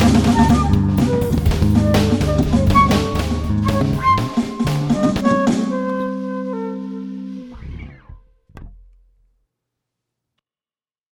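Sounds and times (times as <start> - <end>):
free jazz: 0.0 - 8.2.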